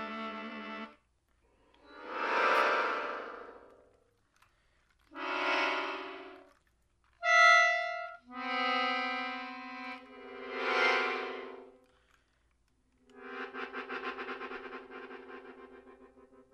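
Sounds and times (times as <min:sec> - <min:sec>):
melodica: 0:00.0 - 0:01.0, 0:01.9 - 0:03.9, 0:05.1 - 0:06.6, 0:07.2 - 0:11.9, 0:13.1 - 0:16.3.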